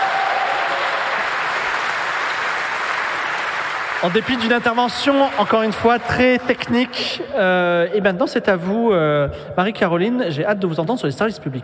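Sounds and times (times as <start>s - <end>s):
audience clapping: 0.0s - 7.1s
speech: 4.0s - 11.6s.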